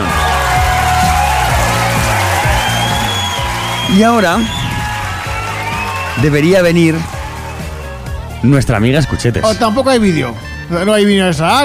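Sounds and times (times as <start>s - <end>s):
whoops and shouts: 0.0s - 6.4s
crowd cheering and applause: 0.0s - 8.6s
speech: 4.0s - 4.6s, 6.2s - 7.1s, 8.4s - 11.6s.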